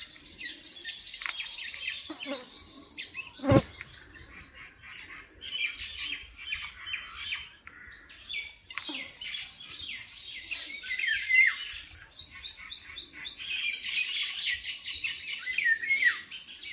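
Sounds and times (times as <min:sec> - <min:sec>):
bird chirps: 0:00.0 - 0:16.7
buzzing insects: 0:03.4 - 0:03.8.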